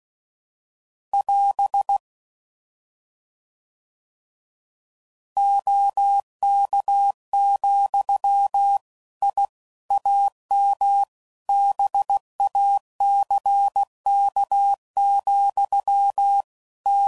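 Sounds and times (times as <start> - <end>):
ham radio Morse code groups and QSOs: 1.2 - 2.0, 5.4 - 17.0.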